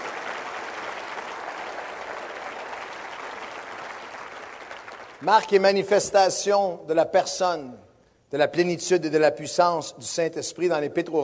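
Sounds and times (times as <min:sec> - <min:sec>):
audience applause: 0:00.0 - 0:05.2
speech: 0:05.2 - 0:11.2.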